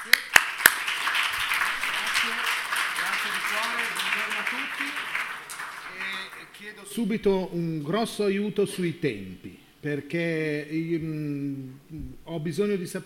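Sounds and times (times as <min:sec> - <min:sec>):
audience applause: 0:00.0 - 0:06.8
speech: 0:06.7 - 0:13.0.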